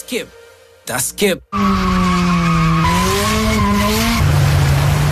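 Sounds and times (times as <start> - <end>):
speech: 0.1 - 1.9
car engine noise: 1.5 - 5.0
car tires squealing through a turn: 1.5 - 5.0.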